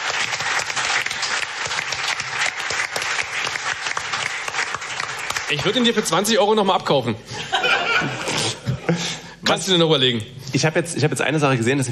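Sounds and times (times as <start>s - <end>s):
crowd applauding: 0.0s - 6.2s
speech: 5.5s - 8.2s, 9.5s - 11.9s
laughter: 7.3s - 9.2s.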